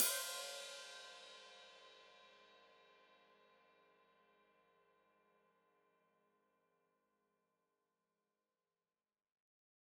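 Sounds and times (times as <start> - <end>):
open hi-hat played with foot: 0.0 - 1.5.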